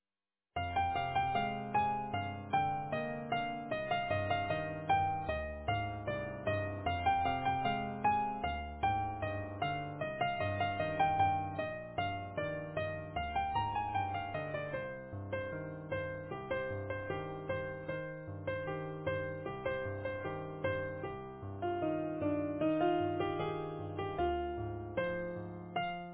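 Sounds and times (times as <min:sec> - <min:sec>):
easy piano: 0:00.6 - 0:26.1.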